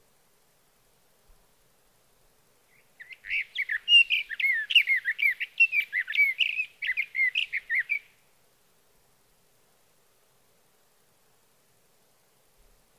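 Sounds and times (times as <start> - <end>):
sage thrasher song: 2.8 - 8.1.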